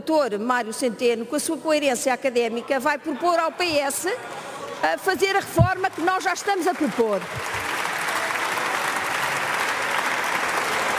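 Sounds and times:
speech: 0.0s - 7.6s
loud applause from PSD parliament members: 5.8s - 10.9s.

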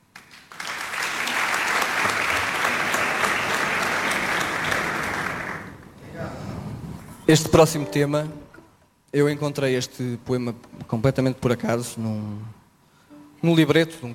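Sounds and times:
crowd applauding: 0.1s - 5.9s
speech: 7.3s - 8.5s, 9.1s - 12.6s, 13.4s - 14.1s.

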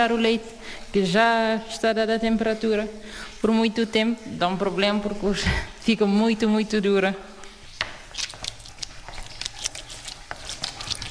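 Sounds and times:
speech: 0.0s - 7.3s
pressing leftover whey out of cheese curd: 7.8s - 11.0s.

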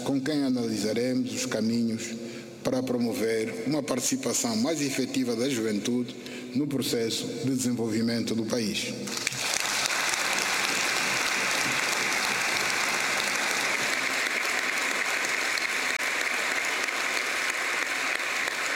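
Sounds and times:
speech: 0.1s - 9.4s
Angolan parliament deputies applauding a speech: 9.1s - 18.7s.

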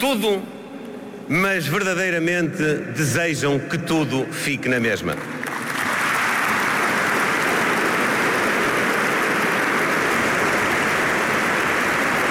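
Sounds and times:
speech: 0.0s - 0.6s, 1.3s - 5.4s
audience applause: 5.4s - 12.2s.

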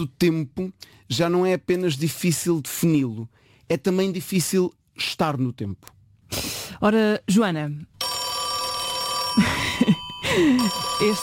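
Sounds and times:
speech: 0.0s - 7.9s, 9.4s - 11.2s
1930 rotary dial telephone ringing with a metallic bell: 8.0s - 11.2s.

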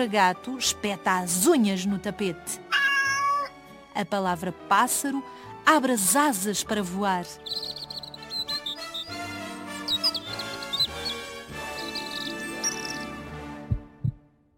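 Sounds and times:
speech: 0.0s - 2.9s, 4.0s - 7.8s
heartbeat sound effect low double thump: 13.6s - 14.3s.

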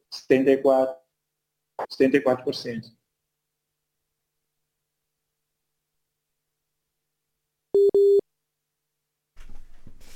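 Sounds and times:
speech: 0.2s - 1.0s, 1.8s - 3.0s, 7.8s - 8.2s
telephone line tone while reconnecting a call to São Tomé: 7.8s - 8.2s.

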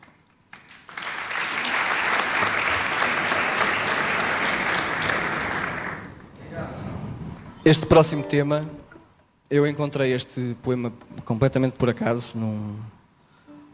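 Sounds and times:
audience applause: 0.0s - 6.3s
speech: 7.6s - 8.9s, 9.5s - 13.0s.

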